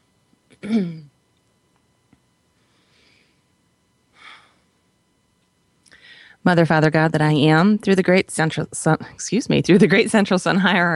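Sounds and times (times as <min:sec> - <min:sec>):
deep breath during a guided centering exercise: 0:02.6 - 0:03.5, 0:04.1 - 0:04.7, 0:05.9 - 0:06.4
speech: 0:06.4 - 0:10.9.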